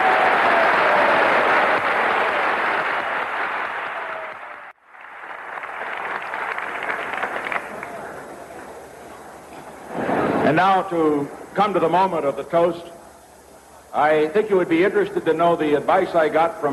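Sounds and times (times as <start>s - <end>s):
audience applause: 0.0s - 8.8s
speech: 10.6s - 13.0s, 14.0s - 16.7s.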